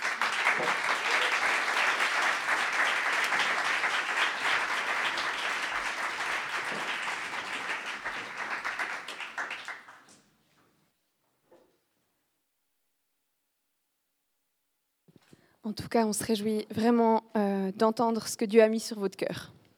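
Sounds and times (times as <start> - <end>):
large crowd applauding welcoming speakers: 0.0 - 10.2
speech: 15.7 - 19.6.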